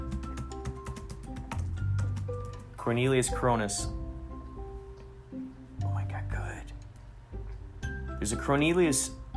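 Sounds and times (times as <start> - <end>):
keyboard typing: 0.0 - 2.8
speech: 2.8 - 4.0, 8.2 - 9.2.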